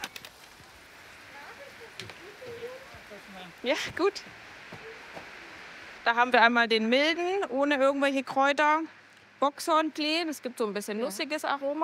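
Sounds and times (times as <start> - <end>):
soft steady rain pattering outdoors: 0.0 - 11.8
faint indistinct voices murmuring: 1.2 - 5.9
speech: 3.4 - 4.4, 6.1 - 11.8.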